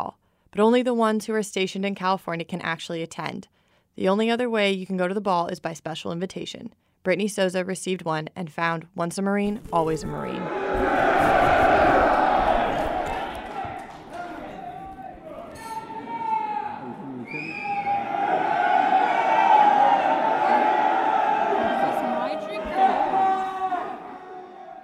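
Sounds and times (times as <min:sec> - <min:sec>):
speech: 0:00.0 - 0:11.1
crowd of over 1,500 Marines roaring at the 241st Marine Corps birthday ball: 0:10.0 - 0:24.8.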